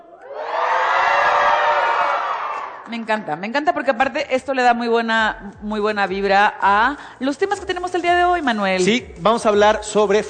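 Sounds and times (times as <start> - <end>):
crowd of young students shouting and cheering: 0.0 - 3.0
speech: 2.9 - 10.2.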